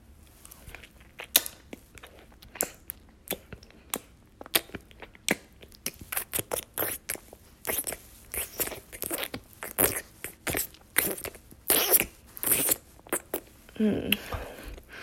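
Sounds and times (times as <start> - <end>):
mouth sucking: 5.3 - 14.9.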